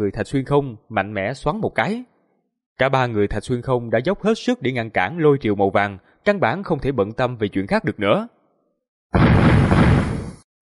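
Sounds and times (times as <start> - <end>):
speech: 0.0 - 2.1, 2.8 - 8.4, 9.1 - 9.5
deep muffled explosion: 9.2 - 10.4.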